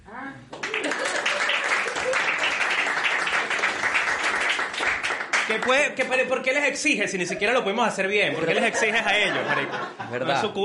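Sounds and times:
audience applause: 0:00.6 - 0:05.9
speech: 0:05.6 - 0:10.6
laughter: 0:07.2 - 0:10.6.

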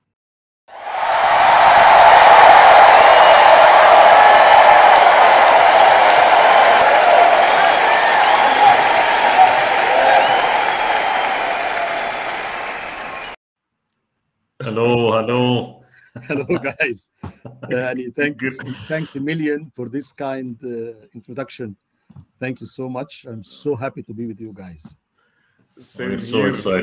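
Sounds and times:
audience applause: 0:00.7 - 0:13.4
speech: 0:14.7 - 0:21.8, 0:22.4 - 0:25.0, 0:25.8 - 0:26.8
laughter: 0:16.1 - 0:19.4.

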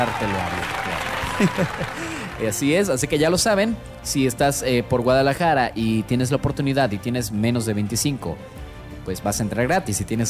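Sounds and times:
laughter: 0:00.0 - 0:02.4
applause and ovation sound effect: 0:00.0 - 0:03.7
speech: 0:00.0 - 0:10.2.

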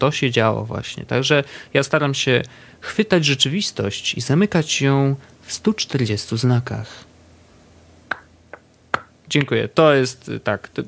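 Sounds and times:
speech: 0:00.0 - 0:07.1, 0:09.3 - 0:10.8
hand claps: 0:08.1 - 0:09.6.

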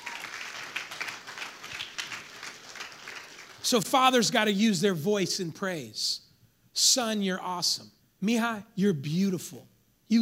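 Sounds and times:
audience clapping: 0:00.0 - 0:03.8
speech: 0:03.6 - 0:06.2, 0:06.8 - 0:10.2.

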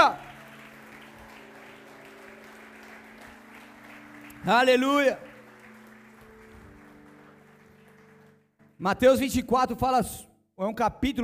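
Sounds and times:
audience applauding: 0:00.0 - 0:08.7
speech: 0:04.4 - 0:05.3, 0:08.8 - 0:11.2.

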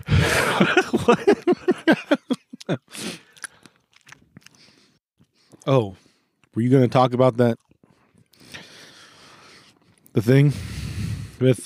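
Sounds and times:
laughter: 0:00.1 - 0:02.8
speech: 0:00.6 - 0:01.6, 0:05.7 - 0:06.0, 0:06.6 - 0:07.7, 0:10.2 - 0:10.8, 0:11.4 - 0:11.6
wet squishy chewing of a strawberry: 0:02.5 - 0:05.6, 0:07.5 - 0:08.7, 0:09.5 - 0:10.1
juicy bite into a strawberry: 0:03.0 - 0:04.8.

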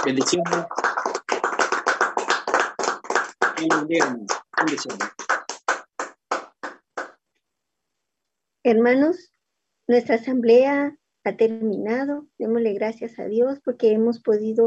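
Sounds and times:
speech: 0:00.0 - 0:00.8, 0:03.6 - 0:05.2, 0:08.6 - 0:09.3, 0:09.9 - 0:14.6
audience applause: 0:00.0 - 0:07.2.

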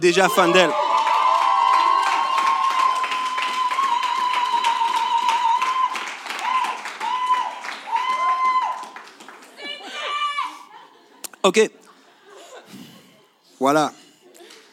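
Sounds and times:
speech: 0:00.0 - 0:00.8, 0:11.4 - 0:11.8, 0:13.6 - 0:14.0
audience cheering and clapping: 0:00.0 - 0:10.7.

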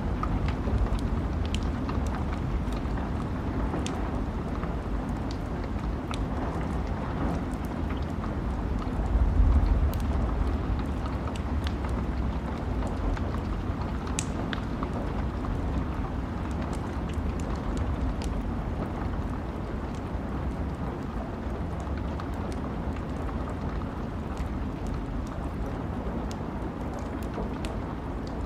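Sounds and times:
low rumble of wind: 0:00.0 - 0:26.7
campfire crackles and pops: 0:00.0 - 0:28.4.

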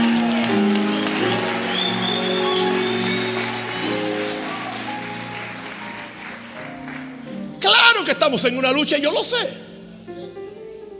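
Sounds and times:
audience applauding loudly: 0:00.0 - 0:07.6
speech: 0:08.1 - 0:09.6.

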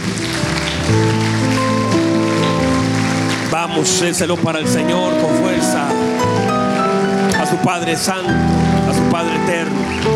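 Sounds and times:
large crowd applauding loudly: 0:00.0 - 0:10.1
speech: 0:03.7 - 0:06.1, 0:07.5 - 0:10.0.

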